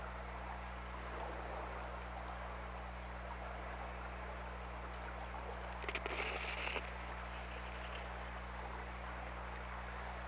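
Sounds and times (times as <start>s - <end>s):
steady underwater hum and engine-like noise: 0.0s - 10.2s
killer whale clicks: 5.7s - 8.2s.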